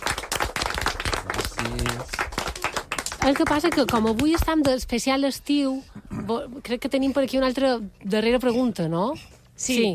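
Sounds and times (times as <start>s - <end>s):
group applause: 0.0s - 4.7s
speech: 1.6s - 2.2s, 3.2s - 9.9s.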